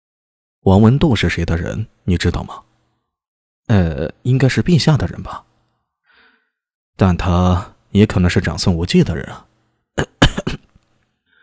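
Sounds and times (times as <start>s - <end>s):
speech: 0.6s - 2.7s, 3.7s - 5.5s, 7.0s - 10.6s
person coughing after choking: 10.0s - 10.8s.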